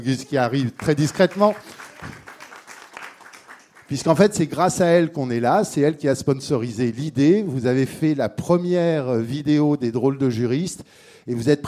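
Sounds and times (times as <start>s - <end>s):
speech: 0.0s - 2.2s, 3.9s - 11.6s
audience applause: 0.5s - 4.1s.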